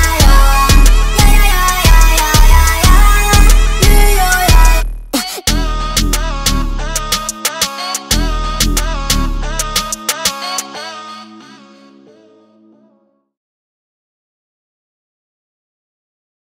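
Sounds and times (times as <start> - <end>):
jerk type beat: 0.0 - 10.7.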